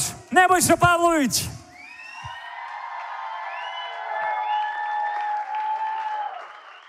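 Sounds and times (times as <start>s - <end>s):
speech: 0.3s - 1.6s
concert audience applause for a band member: 1.8s - 6.8s.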